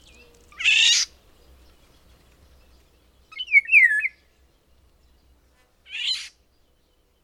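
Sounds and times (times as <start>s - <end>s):
bird harsh raspy call: 0.6s - 1.1s, 5.9s - 6.4s.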